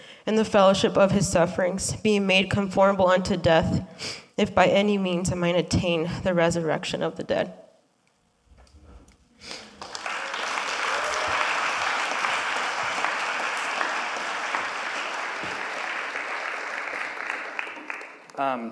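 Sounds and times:
speech: 0.3s - 7.6s, 18.5s - 18.7s
audience clapping: 9.5s - 18.6s.

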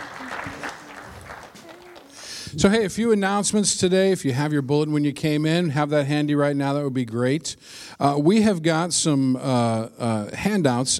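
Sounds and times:
audience clapping: 0.0s - 2.4s
speech: 2.5s - 10.9s.

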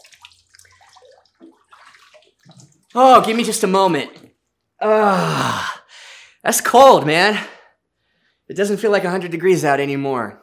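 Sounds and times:
water sloshing as someone climbs out of a cold water tub: 0.0s - 4.5s
speech: 2.9s - 4.2s, 4.8s - 5.7s, 6.4s - 7.6s, 8.5s - 10.4s.

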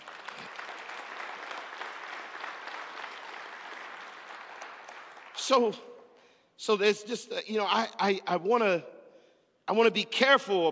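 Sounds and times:
audience applause: 0.0s - 5.4s
speech: 5.5s - 5.9s, 6.6s - 8.9s, 9.7s - 10.7s.

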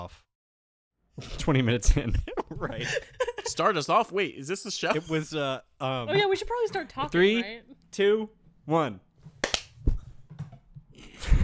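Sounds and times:
speech: 0.1s - 0.3s, 1.2s - 9.1s
laughter: 1.8s - 3.9s
hand claps: 9.4s - 9.8s.

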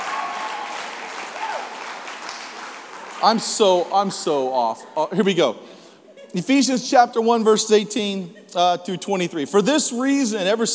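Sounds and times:
audience clapping for pastors: 0.0s - 4.5s
speech: 3.2s - 10.7s.

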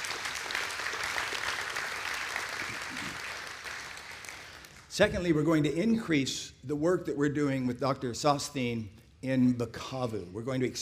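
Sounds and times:
audience applause: 0.0s - 4.8s
speech: 5.0s - 10.7s.

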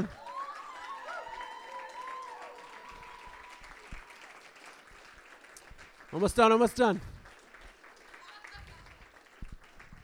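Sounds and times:
audience applause: 0.0s - 10.0s
speech: 6.1s - 7.1s.

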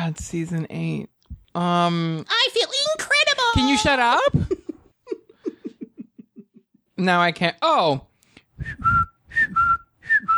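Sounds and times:
speech: 0.1s - 4.6s, 7.0s - 8.1s
laughter: 3.6s - 6.8s
whistled imitation of a cuckoo call: 8.7s - 10.3s.

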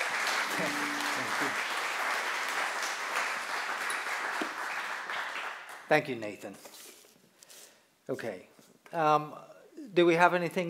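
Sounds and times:
church congregation applauding to welcome a speaker: 0.0s - 5.9s
speech: 0.6s - 1.7s, 5.9s - 6.8s, 8.1s - 10.6s.

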